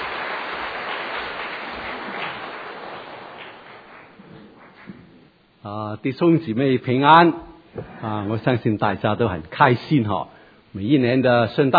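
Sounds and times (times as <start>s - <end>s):
audience applauding: 0.0s - 5.0s
speech: 5.6s - 11.7s.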